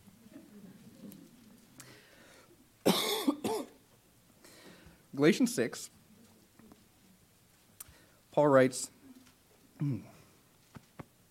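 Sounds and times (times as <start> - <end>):
preacher coughing after something went down the wrong way: 2.8 - 3.8
speech: 5.2 - 6.0, 8.4 - 9.0, 9.8 - 10.1.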